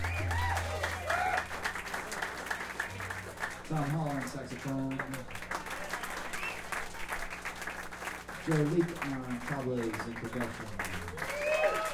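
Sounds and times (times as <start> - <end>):
cheering voices in a lounge: 0.0 - 3.1, 11.1 - 11.9
audience applause for a guitarist in a lounge: 0.0 - 11.9
low steady hum: 0.0 - 11.9
speech: 3.7 - 5.4, 8.5 - 11.3.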